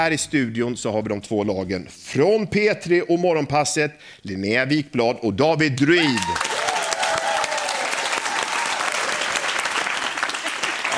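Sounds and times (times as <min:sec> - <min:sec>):
speech: 0:00.0 - 0:06.5
man applauding himself: 0:06.1 - 0:10.9.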